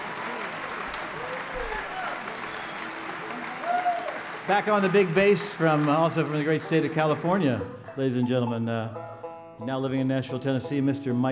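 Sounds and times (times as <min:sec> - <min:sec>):
concert audience clapping to welcome a fiddle player: 0:00.0 - 0:08.1
speech: 0:04.5 - 0:11.3.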